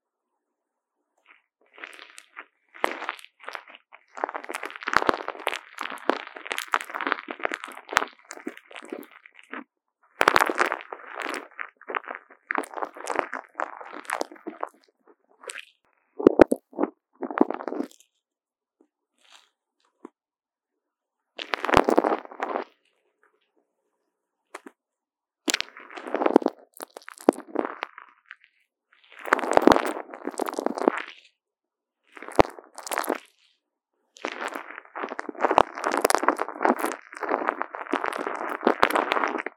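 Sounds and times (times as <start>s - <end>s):
popping candy crackling against a wired microphone: 1.8s - 17.9s, 21.4s - 22.7s, 25.5s - 28.4s, 29.1s - 31.3s, 32.2s - 33.4s, 34.2s - 39.5s.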